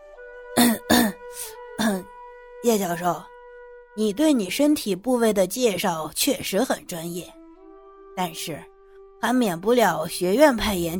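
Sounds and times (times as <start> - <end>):
man clearing his throat: 0.6 - 1.2, 1.8 - 2.0
speech: 2.6 - 3.3, 4.0 - 7.4, 8.2 - 10.9.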